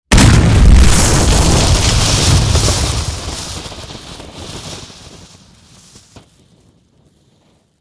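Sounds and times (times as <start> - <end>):
demolition charges exploding: 0.1 - 6.2
debris falling: 0.1 - 6.7.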